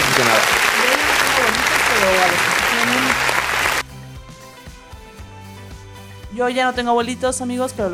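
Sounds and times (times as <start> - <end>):
applause: 0.0 - 3.9
speech: 0.2 - 0.6, 6.4 - 7.9.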